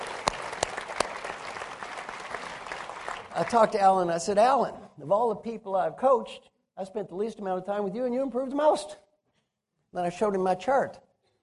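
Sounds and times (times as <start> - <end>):
audience applause: 0.0 - 3.8
speech: 3.4 - 9.0, 9.9 - 11.0.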